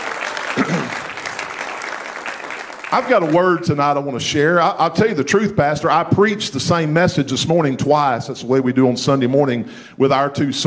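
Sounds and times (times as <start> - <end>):
audience clapping hands in praise: 0.0 - 3.9
speech: 2.9 - 10.6.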